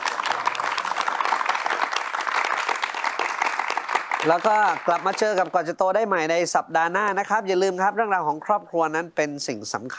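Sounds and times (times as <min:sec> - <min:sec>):
audience applause: 0:00.0 - 0:05.7
speech: 0:04.2 - 0:09.9.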